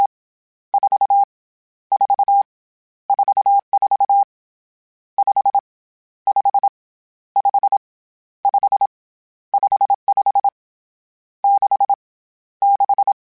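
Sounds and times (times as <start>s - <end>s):
Morse code CW code groups: 0.8s - 1.3s, 1.9s - 2.4s, 3.1s - 4.3s, 5.2s - 5.6s, 6.3s - 6.7s, 7.4s - 7.8s, 8.5s - 8.9s, 9.6s - 10.6s, 11.4s - 12.0s, 12.6s - 13.2s.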